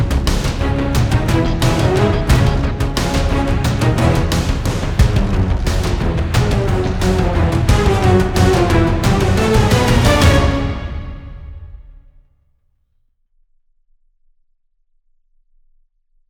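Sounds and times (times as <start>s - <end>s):
combat sounds: 0.5s - 12.0s.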